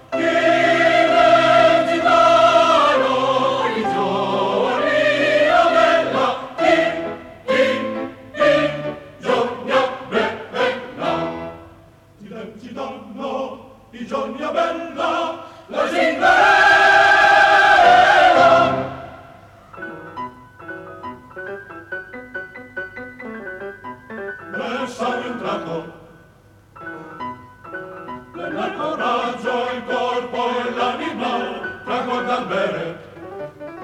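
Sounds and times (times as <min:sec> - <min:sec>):
opera chorus singing: 0:00.0 - 0:19.6, 0:24.5 - 0:26.2, 0:28.4 - 0:33.3.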